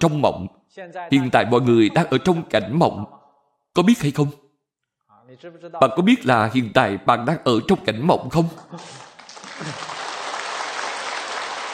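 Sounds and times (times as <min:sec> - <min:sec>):
speech: 0:00.0 - 0:03.2, 0:03.8 - 0:04.4, 0:05.3 - 0:09.9
audience clapping: 0:08.4 - 0:11.7.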